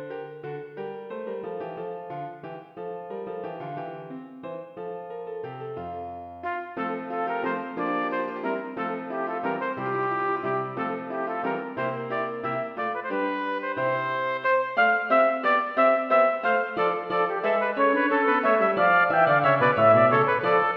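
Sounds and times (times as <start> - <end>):
piano: 0.0 - 20.7
two trumpets playing a passepied: 6.5 - 20.7.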